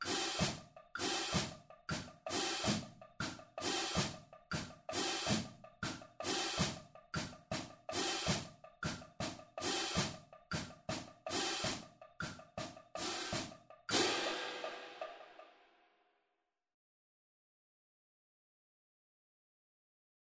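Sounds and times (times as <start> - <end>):
cymbal accent taps: 0.0 - 15.6.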